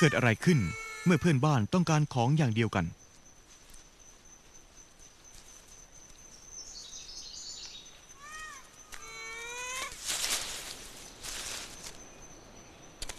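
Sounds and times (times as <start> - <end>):
ring-tailed lemurs in Madagascar calling: 0.0 - 3.0, 8.0 - 10.4
speech: 0.0 - 3.0
hiss: 0.0 - 13.1.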